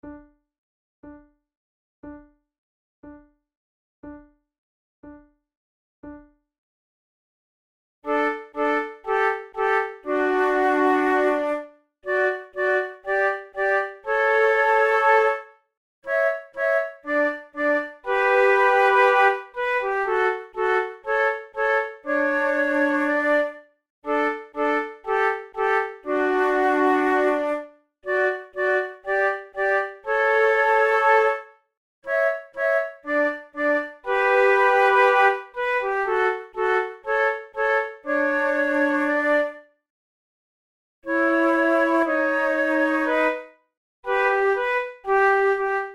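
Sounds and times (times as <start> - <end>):
andante trio flute tunes: 8.1 - 15.5, 16.1 - 39.7, 41.1 - 45.9.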